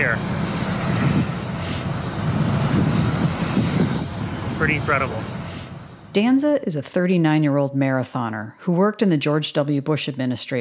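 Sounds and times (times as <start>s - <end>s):
New England Patriots jet engines roaring on the tarmac: 0.0s - 8.2s
speech: 4.7s - 5.4s, 6.1s - 10.5s.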